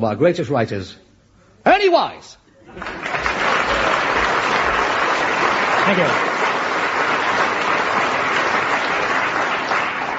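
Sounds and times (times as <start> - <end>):
speech: 0.0 - 3.8, 5.9 - 6.3
audience applause: 2.7 - 10.1.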